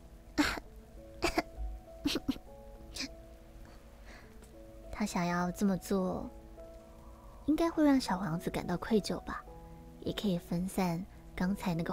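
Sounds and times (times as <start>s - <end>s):
soft sustained music: 0.0s - 11.9s
person fake coughing: 0.4s - 1.5s
speech: 5.0s - 6.4s, 7.5s - 9.4s, 10.0s - 11.9s.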